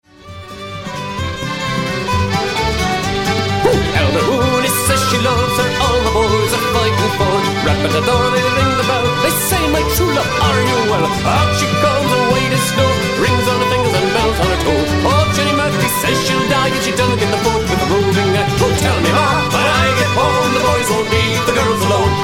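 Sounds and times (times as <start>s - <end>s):
Irish band playing: 0.4s - 22.2s.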